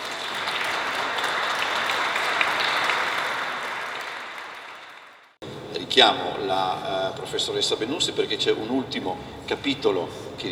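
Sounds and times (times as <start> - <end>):
audience applauding: 0.0 - 5.4
speech: 6.0 - 10.5.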